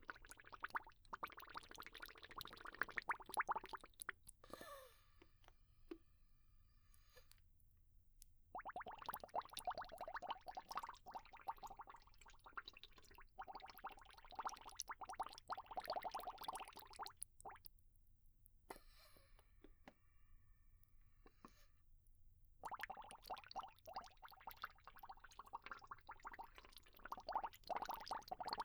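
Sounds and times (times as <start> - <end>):
bubbles: 0.0 - 4.2, 8.5 - 17.7, 22.6 - 28.6.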